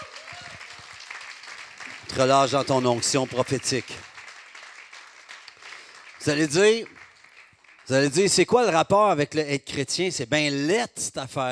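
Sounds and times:
audience applauding: 0:00.0 - 0:08.7
speech: 0:02.1 - 0:04.1, 0:06.2 - 0:07.0, 0:07.9 - 0:11.5.

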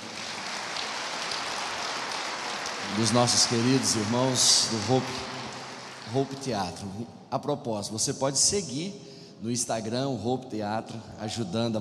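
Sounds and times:
audience applause: 0:00.0 - 0:06.8
speech: 0:02.9 - 0:05.4, 0:06.1 - 0:11.7.

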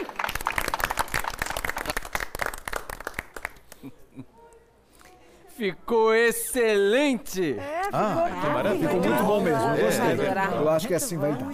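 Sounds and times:
applause: 0:00.0 - 0:04.0
speech: 0:05.6 - 0:11.5.

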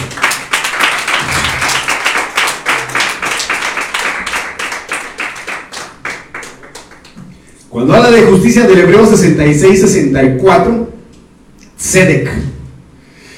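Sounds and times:
audience clapping hands: 0:00.0 - 0:07.4
speech: 0:07.8 - 0:10.9, 0:11.9 - 0:12.5.

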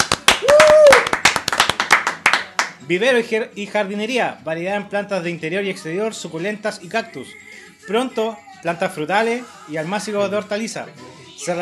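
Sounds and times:
audience applause: 0:00.0 - 0:02.7
speech: 0:02.9 - 0:11.5.

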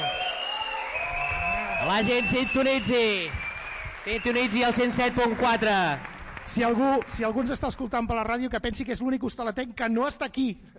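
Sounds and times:
audience of 2,000 applauding: 0:00.0 - 0:07.8
speech: 0:01.9 - 0:03.4, 0:04.0 - 0:10.7.

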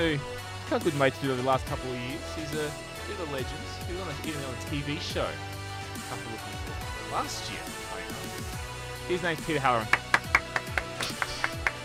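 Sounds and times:
speech: 0:00.0 - 0:10.0
one person applauding with crisp hand claps: 0:09.8 - 0:11.8.

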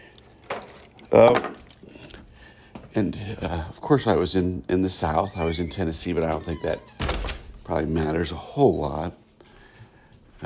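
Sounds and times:
speech: 0:01.1 - 0:01.6, 0:03.0 - 0:07.0, 0:07.7 - 0:09.2
door opening to let dog in: 0:05.2 - 0:07.6.

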